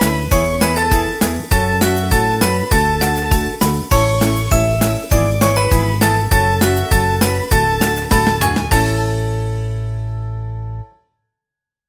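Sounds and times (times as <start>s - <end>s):
happy upbeat ukulele background music: 0.0s - 9.5s.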